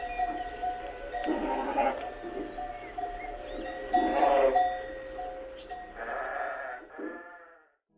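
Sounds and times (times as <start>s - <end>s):
sheep bleating: 1.1s - 2.6s, 3.8s - 4.8s, 5.7s - 7.7s.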